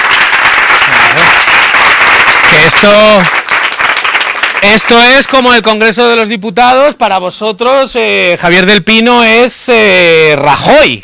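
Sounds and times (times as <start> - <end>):
audience applause: 0.0 - 5.4
speech: 2.7 - 3.4, 4.6 - 11.0.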